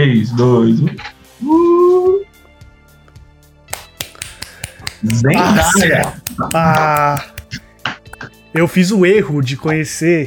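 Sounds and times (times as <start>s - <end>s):
speech: 0.2s - 2.1s, 5.0s - 7.6s, 8.5s - 10.2s
hands clapping: 3.7s - 8.0s
soft rhythmic tapping beats: 3.7s - 8.3s.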